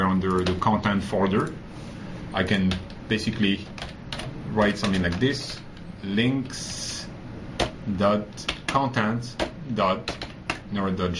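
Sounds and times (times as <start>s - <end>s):
computer keyboard typing while coding in Visual Studio: 0.1s - 0.8s, 2.6s - 3.0s, 3.6s - 5.9s, 7.6s - 7.8s, 8.4s - 10.7s
speech: 0.2s - 3.9s, 4.5s - 6.9s, 7.9s - 11.1s.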